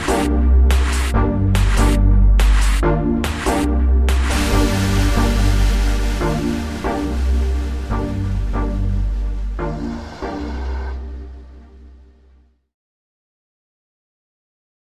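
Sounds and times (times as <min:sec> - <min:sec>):
trance music: 0:00.0 - 0:12.4.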